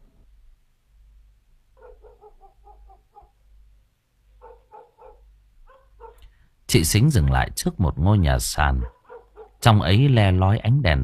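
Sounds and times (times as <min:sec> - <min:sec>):
dogs barking at night in a small village in heavy rain: 0:01.8 - 0:03.4, 0:04.4 - 0:06.3, 0:08.8 - 0:09.6
speech: 0:06.7 - 0:09.0, 0:09.6 - 0:11.0.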